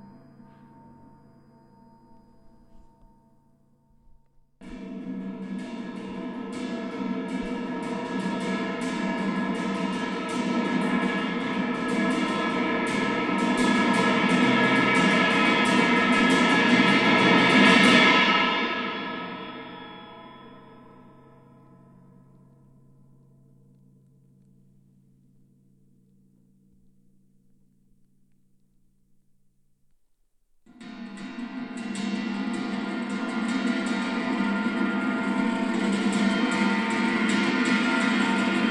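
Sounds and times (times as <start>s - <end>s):
cymbal rolls: 4.6s - 23.0s, 30.8s - 38.6s.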